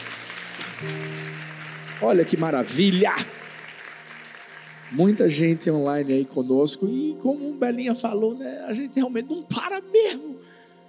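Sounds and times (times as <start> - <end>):
audience applauding: 0.0 - 6.6
speech: 0.8 - 1.3, 2.0 - 3.4, 4.9 - 10.8.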